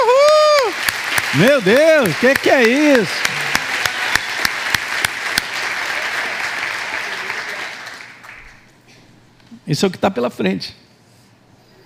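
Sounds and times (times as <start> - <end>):
audience applause: 0.0 - 8.7
speech: 1.4 - 3.4, 9.7 - 10.8.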